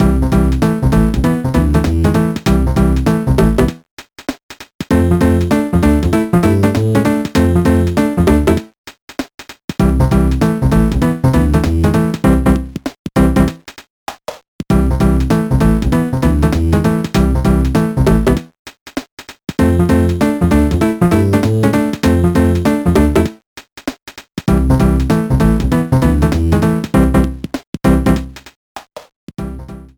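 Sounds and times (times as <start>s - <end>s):
video game world four map music: 0.0s - 3.8s, 4.9s - 8.7s, 9.8s - 13.6s, 14.7s - 18.5s, 19.6s - 23.4s, 24.5s - 28.4s, 29.4s - 29.9s.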